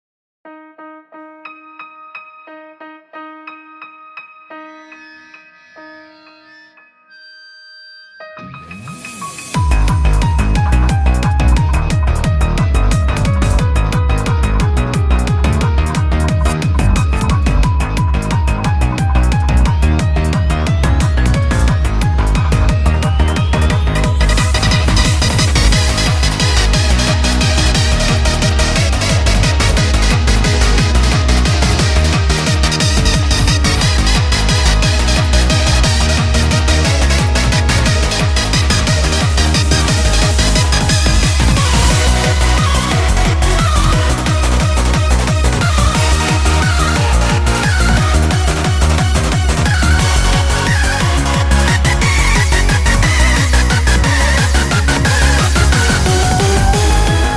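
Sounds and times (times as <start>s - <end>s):
nu rave music: 8.4s - 57.3s.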